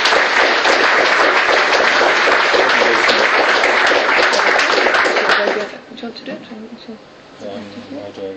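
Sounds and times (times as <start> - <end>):
audience applause at an event in Glasgow: 0.0 - 5.8.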